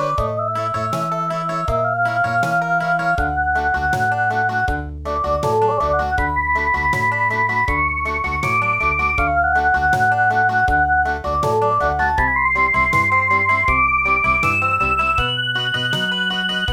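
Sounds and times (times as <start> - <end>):
traditional meditation country music in midi: 0.0 - 16.7.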